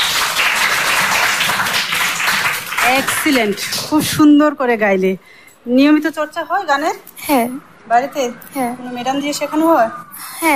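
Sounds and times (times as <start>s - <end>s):
applause after a sung performance: 0.0s - 3.7s
speech: 2.9s - 10.5s.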